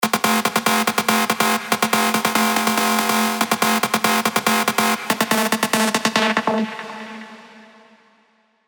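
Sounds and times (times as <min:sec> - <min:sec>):
big room techno drops: 0:00.0 - 0:06.9.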